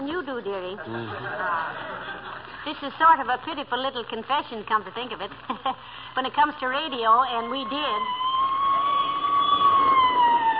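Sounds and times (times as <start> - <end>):
speech: 0.0 - 8.3
laughter: 0.8 - 2.6
siren of a passing police squad car: 7.3 - 10.5.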